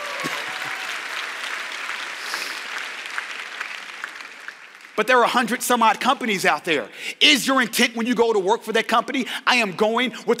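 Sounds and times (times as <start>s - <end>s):
audience clapping: 0.0s - 5.9s
speech: 5.0s - 10.3s.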